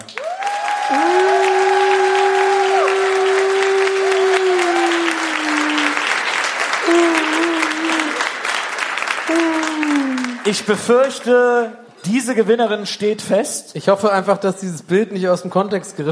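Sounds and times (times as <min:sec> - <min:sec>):
audience applause: 0:00.0 - 0:11.6
audience cheers and whoops: 0:00.1 - 0:08.4, 0:09.3 - 0:10.5
speech: 0:10.5 - 0:16.1.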